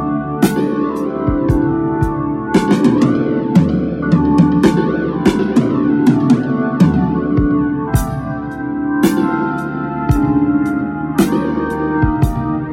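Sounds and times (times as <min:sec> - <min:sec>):
drums with phaser effect: 0:00.0 - 0:12.7.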